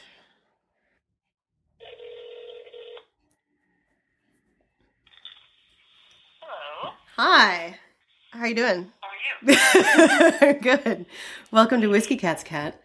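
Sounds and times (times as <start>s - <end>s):
telephone call ringing: 1.8s - 3.1s
speech: 7.2s - 7.8s, 8.4s - 12.8s
laughter: 9.5s - 11.0s.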